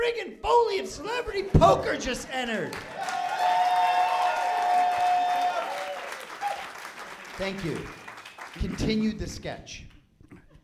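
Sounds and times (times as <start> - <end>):
speech: 0.1 - 3.6, 7.4 - 8.0, 8.6 - 9.9
audience applause and cheering: 1.2 - 9.1.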